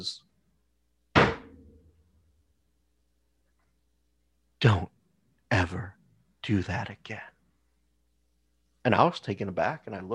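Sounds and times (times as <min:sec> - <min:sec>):
speech: 0:00.0 - 0:00.3, 0:04.6 - 0:04.9, 0:05.6 - 0:07.3, 0:08.8 - 0:10.1
fist slamming down on a table: 0:01.2 - 0:01.7.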